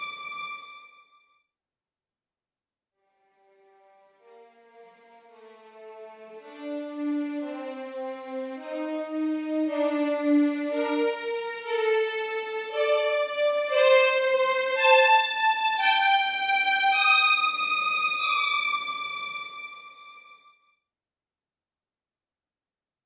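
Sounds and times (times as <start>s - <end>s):
first violins playing legato: 6.4s - 19.8s.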